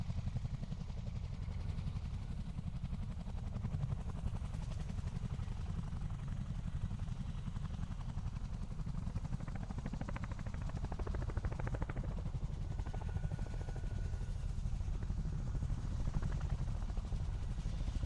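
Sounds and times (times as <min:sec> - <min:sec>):
Chinook helicopter hovering and passing: 0:00.0 - 0:18.0.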